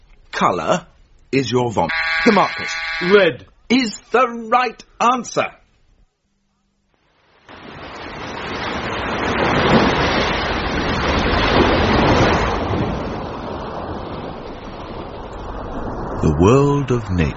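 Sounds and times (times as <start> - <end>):
speech: 0.4 - 5.6, 16.3 - 17.3
ocean waves and surf: 7.1 - 17.3.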